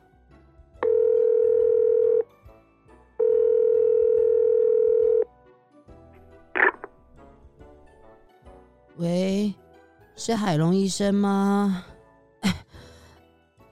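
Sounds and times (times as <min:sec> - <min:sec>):
telephone line tone while calling: 0:00.8 - 0:02.2, 0:03.2 - 0:05.3
speech: 0:10.2 - 0:12.6.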